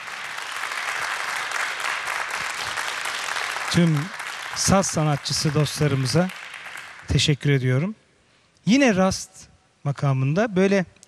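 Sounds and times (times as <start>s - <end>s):
audience applauding an orchestra of saz players at a Turkish classical music concert: 0.0s - 7.3s
speech: 3.7s - 6.4s, 7.1s - 8.0s, 8.6s - 11.0s.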